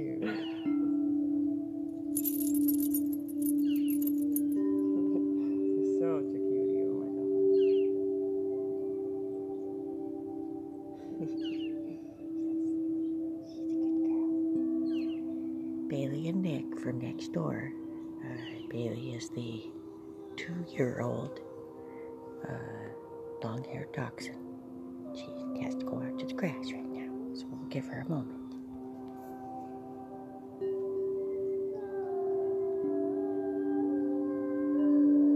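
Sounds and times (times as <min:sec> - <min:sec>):
Tibetan singing bowls: 0:00.0 - 0:35.3
gypsy bracelet: 0:02.2 - 0:04.6
wind chimes: 0:02.2 - 0:05.9.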